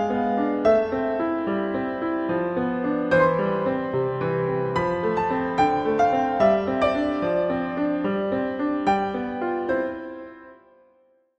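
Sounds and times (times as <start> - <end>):
classical solo piano concerto: 0.0 - 11.3.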